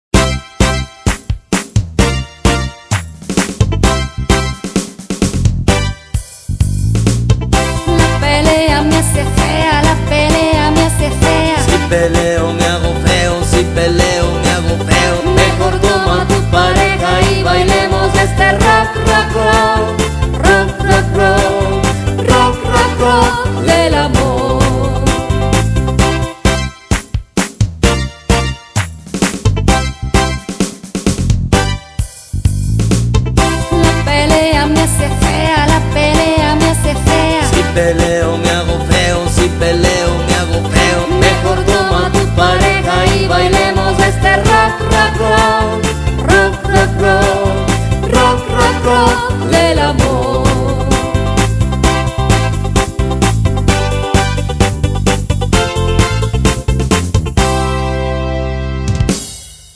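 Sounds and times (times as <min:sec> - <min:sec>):
rock love song: 0:00.1 - 0:59.7.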